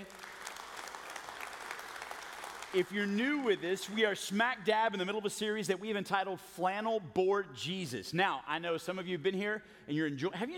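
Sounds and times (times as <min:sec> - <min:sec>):
audience applause: 0:00.0 - 0:04.2
speech: 0:02.7 - 0:10.5.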